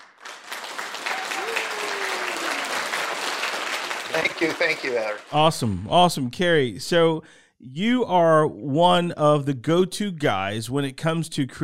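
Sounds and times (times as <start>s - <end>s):
crowd applauding: 0.0s - 5.4s
speech: 4.2s - 11.6s.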